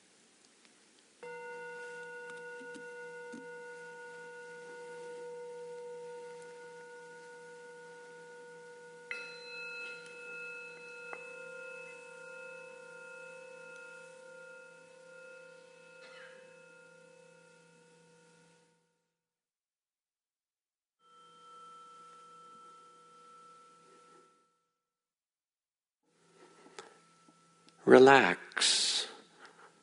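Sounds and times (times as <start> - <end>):
meditation bells ringing: 1.2 - 18.8, 21.0 - 24.6
speech: 27.9 - 28.8.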